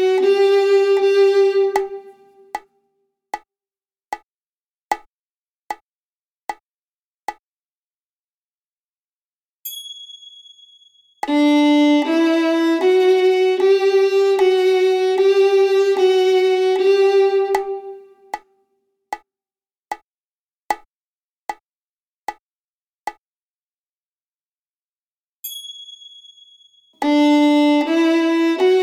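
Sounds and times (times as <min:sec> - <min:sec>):
violin played on the D string: 0:00.0 - 0:02.5, 0:11.3 - 0:18.4, 0:27.0 - 0:28.8.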